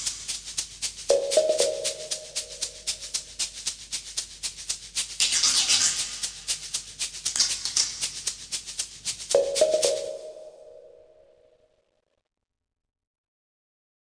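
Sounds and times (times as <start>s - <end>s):
tension building music: 1.1s - 3.2s, 9.4s - 11.0s.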